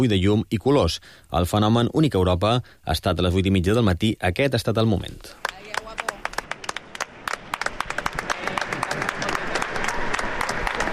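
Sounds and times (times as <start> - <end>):
speech: 0.0 - 6.0
crowd applauding: 5.4 - 10.9
cheering voices: 8.0 - 10.9.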